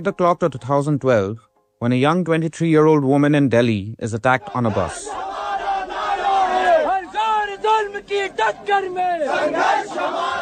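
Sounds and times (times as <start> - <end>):
speech: 0.0 - 5.3, 8.0 - 10.4
protest crowd shouting in street in rhythmic bursts: 4.4 - 10.4.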